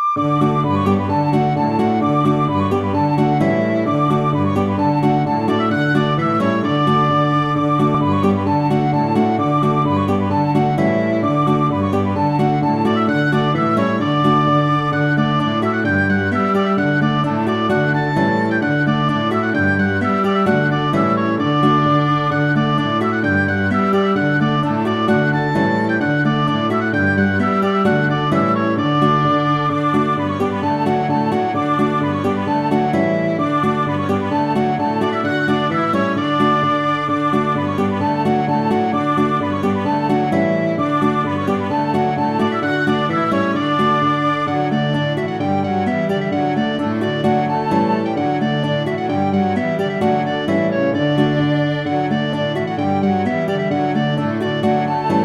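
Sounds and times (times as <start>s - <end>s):
polka music: 0.2s - 55.2s.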